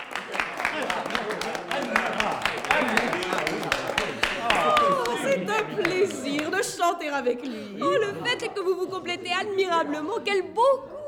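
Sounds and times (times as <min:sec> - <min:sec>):
audience applause after a concert: 0:00.0 - 0:06.7
laughter: 0:00.0 - 0:10.9
murmur of voices: 0:00.0 - 0:11.0
speech: 0:05.8 - 0:11.0.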